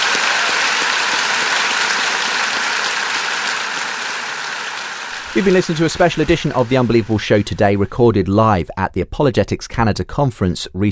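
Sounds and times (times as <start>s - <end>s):
audience applause: 0.0s - 8.1s
speech: 5.3s - 10.9s.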